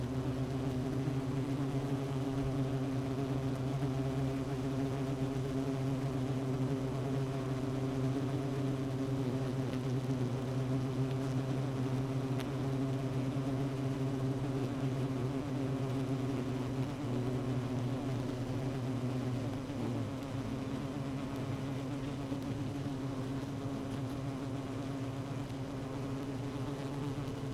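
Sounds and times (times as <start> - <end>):
honey bee colony humming: 0.0 - 27.5
faint clicks: 12.4 - 12.6.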